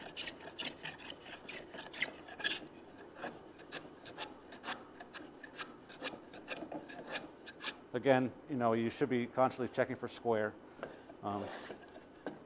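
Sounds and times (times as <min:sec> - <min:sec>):
hand plane shaving wood: 0:00.0 - 0:07.8
speech: 0:07.9 - 0:11.7.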